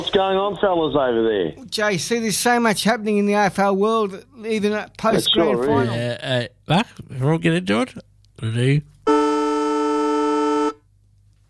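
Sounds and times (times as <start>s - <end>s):
speech: 0.0s - 8.9s
old sports ground siren at Traeger Park: 9.1s - 10.8s.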